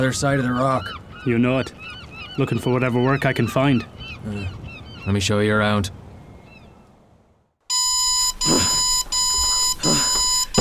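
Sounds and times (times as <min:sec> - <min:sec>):
speech: 0:00.0 - 0:06.0
alarm clock ringing with a high electronic tone: 0:07.7 - 0:10.6.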